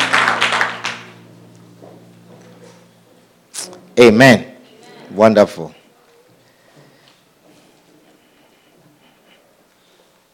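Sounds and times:
crowd clapping hands: 0.0 - 1.3
speech: 4.0 - 4.5, 5.1 - 5.8.

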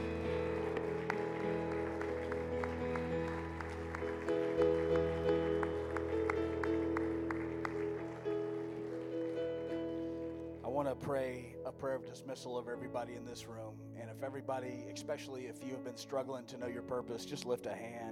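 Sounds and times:
audience hand clapping: 0.0 - 10.7
steady sustained music: 0.0 - 13.3
speech: 11.0 - 18.1.

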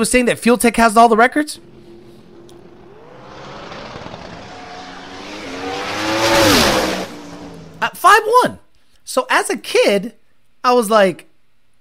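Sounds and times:
speech: 0.0 - 1.7, 7.9 - 11.3
ProMod twin-turbo drag car engine roar on a quarter-mile run: 1.0 - 8.1.

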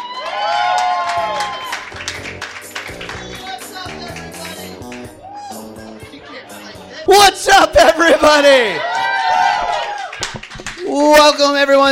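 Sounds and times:
comedy show audience applauding to welcome the hosts: 0.0 - 5.2, 8.9 - 11.0
audience cheering: 0.0 - 5.9, 8.3 - 11.0
speech: 7.2 - 8.9, 11.0 - 11.9.

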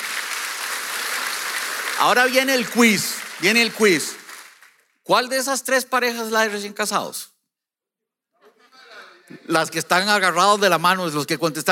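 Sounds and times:
crowd clapping: 0.0 - 5.2, 9.8 - 11.7
speech: 2.0 - 4.2, 5.1 - 7.3, 9.3 - 11.7.

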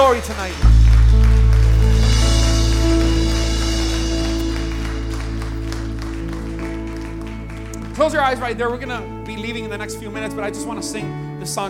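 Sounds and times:
audience applause: 0.0 - 9.2
speech: 0.1 - 1.3, 8.0 - 11.6
loud sustained low musical chords: 0.5 - 11.4.

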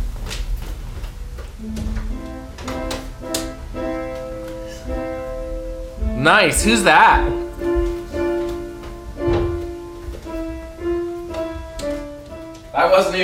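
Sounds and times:
piano notes: 1.2 - 13.2
speech: 1.6 - 1.8, 6.2 - 7.4, 13.0 - 13.2.

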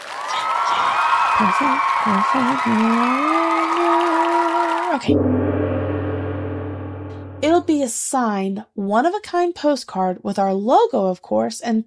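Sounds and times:
cheering: 0.0 - 5.1
clapping: 0.0 - 5.1
speech: 1.4 - 5.6, 7.5 - 11.8.

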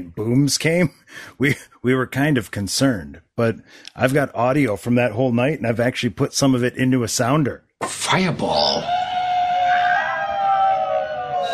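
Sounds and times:
speech: 0.0 - 9.0
people screaming in street in front of apartment at midnight on Y2K: 8.6 - 11.5.

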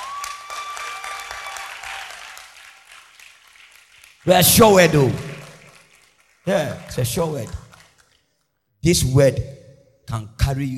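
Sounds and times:
audience clapping: 0.0 - 8.2
speech: 4.2 - 5.3, 6.4 - 7.6, 8.8 - 10.7.

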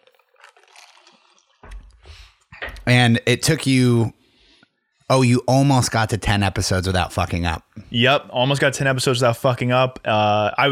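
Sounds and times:
person sipping coffee: 0.0 - 2.5
speech: 2.8 - 4.2, 5.1 - 10.7.

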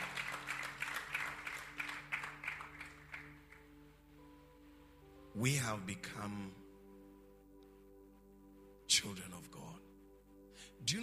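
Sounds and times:
audience applause in a church: 0.0 - 3.7
speech: 5.4 - 6.6, 9.0 - 9.8, 10.8 - 11.0.

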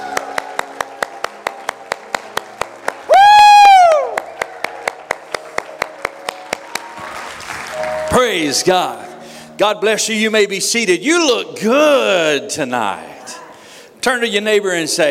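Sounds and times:
audience clapping hands loudly: 0.0 - 9.0
speech: 8.2 - 9.0, 9.6 - 13.1, 14.0 - 15.1.

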